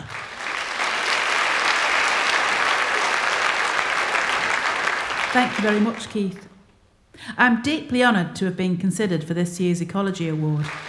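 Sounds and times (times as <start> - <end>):
applause greeting an award speaker at an ecology award presentation: 0.0 - 6.4, 10.4 - 10.8
speech: 5.3 - 6.5, 7.2 - 10.8.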